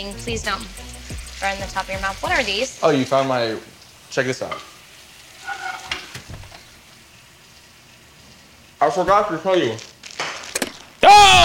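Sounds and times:
speech: 0.0 - 4.7, 8.8 - 9.9
chicken sizzling in a hot pan: 0.0 - 11.4
scraping in a pan: 4.4 - 6.8.

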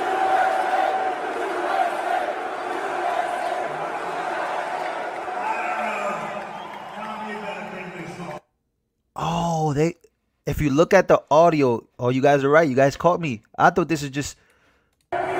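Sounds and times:
political rally crowd inside venue: 0.0 - 8.4, 15.1 - 15.3
speech: 9.8 - 14.4.

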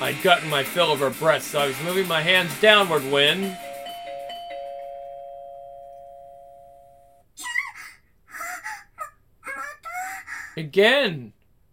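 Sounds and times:
speech: 0.1 - 3.7, 10.6 - 11.4
doorbell ringing: 3.5 - 7.2.

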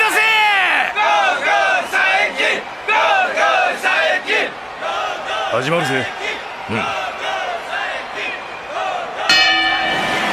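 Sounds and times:
crowd cheering: 0.0 - 10.3
speech: 5.6 - 7.0
boxing gong ringing: 9.3 - 10.3.

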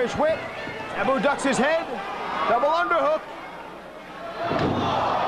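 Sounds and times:
speech: 0.1 - 3.3
wrestler slammed face first onto ring canvas: 4.4 - 5.1.

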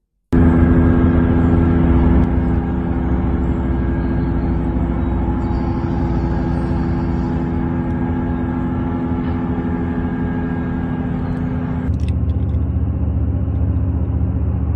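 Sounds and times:
data center industrial drone with low rumble and hum: 0.3 - 14.7.

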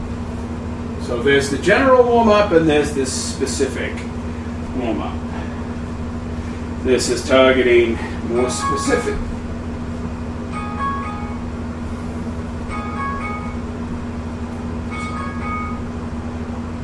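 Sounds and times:
speech: 1.1 - 4.1, 4.8 - 5.3, 6.9 - 9.3
alarm going off: 8.3 - 9.3, 10.5 - 11.7, 12.7 - 14.0, 14.9 - 16.1.

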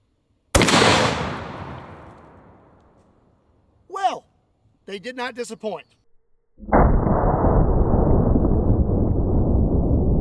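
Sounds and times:
.50 BMG RIP round fired into a Ballistic Dummy Lab zombie bust: 0.6 - 2.6, 6.6 - 8.7
speech: 4.9 - 6.0
long rumbling tail of a .50 BMG gunshot: 6.6 - 10.1.

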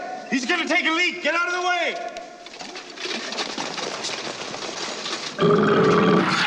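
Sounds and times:
speech: 0.3 - 2.1
loud belch: 5.4 - 6.3.

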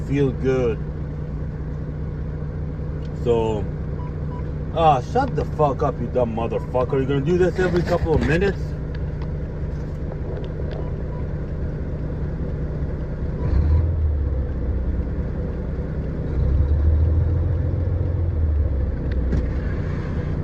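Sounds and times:
car engine idling: 0.0 - 20.4
speech: 0.1 - 0.9, 3.2 - 3.8, 4.7 - 8.7.

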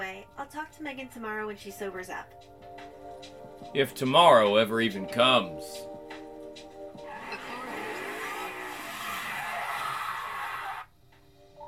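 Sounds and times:
speech: 0.0 - 5.9
car engine revving: 7.0 - 10.8
car tires squealing as it skids: 7.0 - 10.9.

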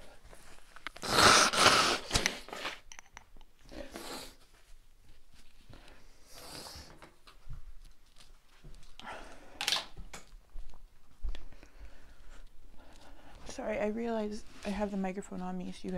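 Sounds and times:
blowing nose into tissue: 0.9 - 2.9, 3.7 - 4.5, 6.2 - 6.9
speech: 13.7 - 15.9.

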